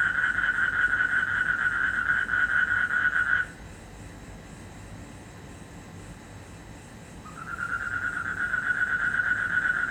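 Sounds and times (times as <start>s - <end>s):
frog trilling in Indonesia: 0.0s - 3.6s, 7.2s - 9.8s.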